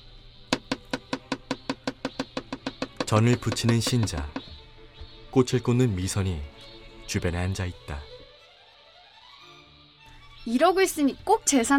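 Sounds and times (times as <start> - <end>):
knife chopping meat on cutting board: 0.6 - 4.5
speech: 3.1 - 4.4, 5.3 - 8.1, 10.4 - 11.7.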